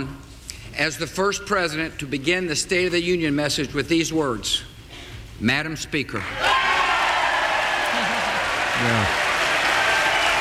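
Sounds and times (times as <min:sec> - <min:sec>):
speech: 0:00.8 - 0:04.7, 0:05.4 - 0:06.6, 0:08.8 - 0:09.2
joint session applauding: 0:06.2 - 0:10.3.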